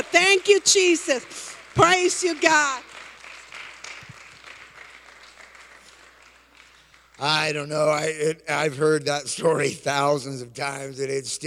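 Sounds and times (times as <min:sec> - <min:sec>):
audience clapping hands: 0:00.0 - 0:07.7
speech: 0:00.4 - 0:02.9, 0:07.2 - 0:11.4.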